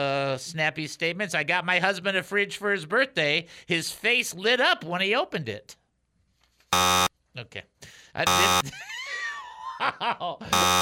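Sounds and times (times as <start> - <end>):
speech: 0.0 - 5.8, 6.7 - 9.0, 9.8 - 10.8
electronic buzzer: 6.7 - 7.1, 8.2 - 8.6, 10.5 - 10.8
choppy laughter-like voices: 8.5 - 10.8.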